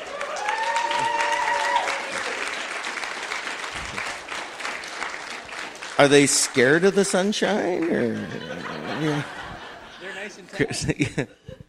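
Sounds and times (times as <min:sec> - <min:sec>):
applause: 0:00.0 - 0:08.5
audience cheering: 0:00.0 - 0:10.2
speech: 0:06.0 - 0:09.4, 0:10.5 - 0:11.4
laughter: 0:07.6 - 0:11.6.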